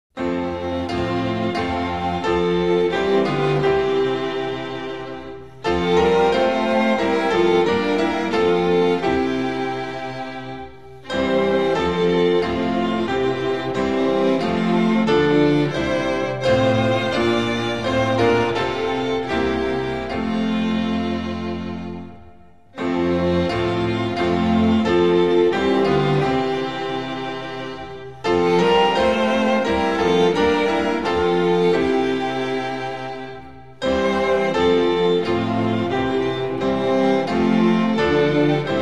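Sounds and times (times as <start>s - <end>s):
instrumental music: 0.2s - 38.8s.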